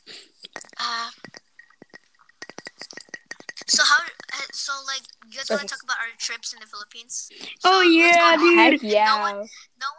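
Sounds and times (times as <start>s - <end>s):
tapping on glass: 0.4s - 4.6s
speech: 5.5s - 9.7s.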